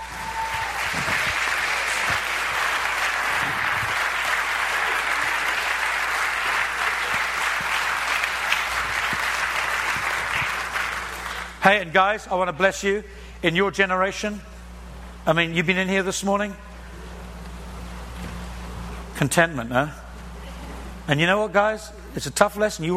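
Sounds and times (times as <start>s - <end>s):
audience applause: 0.0s - 11.6s
speech: 11.6s - 14.5s, 15.2s - 16.7s, 19.2s - 20.0s, 21.1s - 22.9s.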